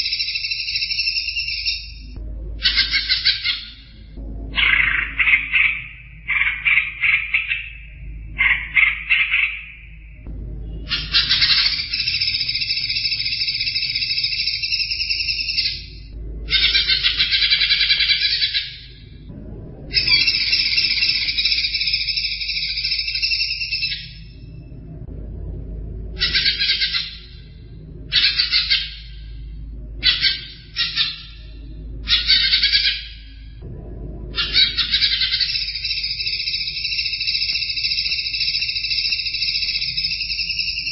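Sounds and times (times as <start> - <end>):
greater green leafbird trilling: 0.0 - 19.3, 19.9 - 24.6, 26.1 - 33.6, 34.3 - 40.9
low hum: 0.0 - 40.9.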